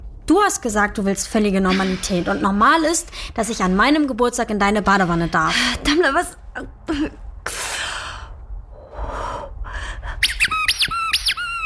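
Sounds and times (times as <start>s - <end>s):
speech: 0.3s - 7.6s
squeaky rubber duck being squeezed: 10.2s - 11.6s.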